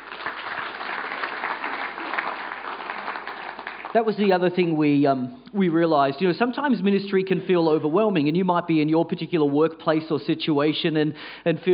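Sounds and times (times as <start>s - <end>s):
group applauding: 0.0s - 4.5s
speech: 3.9s - 11.7s.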